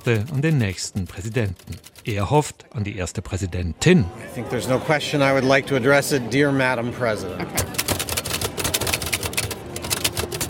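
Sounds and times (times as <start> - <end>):
old manual typewriter keys clacking: 0.0 - 2.4, 7.6 - 10.4
speech: 0.0 - 7.9.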